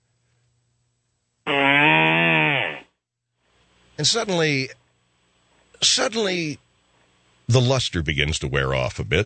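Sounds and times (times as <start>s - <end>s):
fart: 1.4s - 3.0s
speech: 4.0s - 4.8s, 5.8s - 6.6s, 7.5s - 9.2s.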